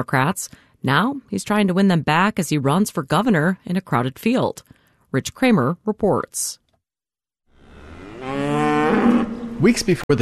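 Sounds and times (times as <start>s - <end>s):
speech: 0.0s - 6.6s, 9.6s - 10.2s
dairy cow mooing at Riverview Dairy Farm in Chippewa County: 7.5s - 9.6s.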